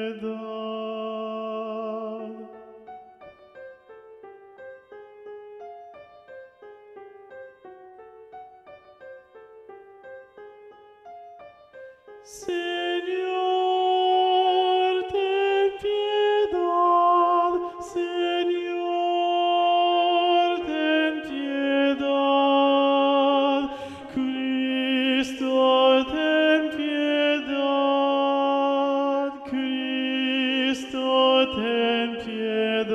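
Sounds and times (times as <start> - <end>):
predominant treble voice singing: 0.0 - 3.2, 12.2 - 32.9.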